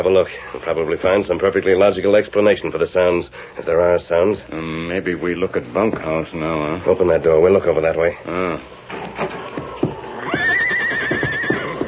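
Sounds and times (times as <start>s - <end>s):
speech: 0.0s - 9.6s
horse neighing nervously: 8.5s - 11.8s
shuffling hoof clops and thuds: 8.9s - 11.8s.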